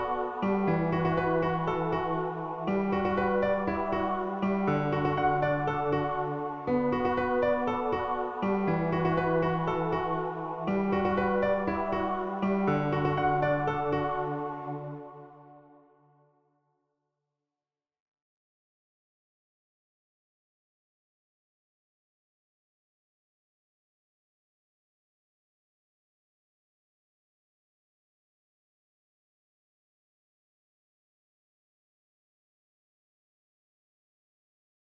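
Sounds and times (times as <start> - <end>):
piano: 0.0 - 15.8.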